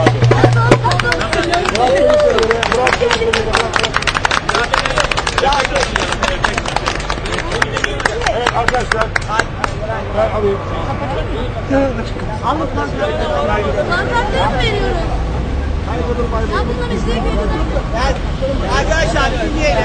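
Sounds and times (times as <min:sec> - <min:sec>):
gathered crowd applauding: 0:00.0 - 0:09.8
voices speaking and calling: 0:00.0 - 0:19.8.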